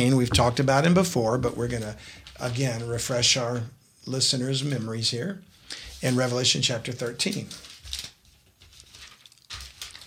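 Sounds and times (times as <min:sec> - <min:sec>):
speech: 0:00.0 - 0:07.7
thin new Bible pages being peeled apart: 0:05.8 - 0:10.0.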